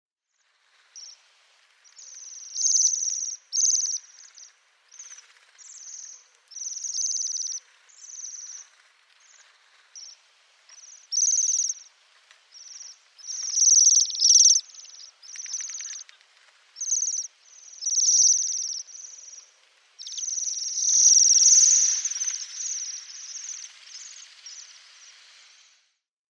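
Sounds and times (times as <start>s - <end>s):
Bohemian waxwing calls: 1.9s - 9.4s, 10.8s - 11.9s, 12.6s - 16.2s, 16.8s - 25.2s
faint clicks: 14.8s - 16.5s.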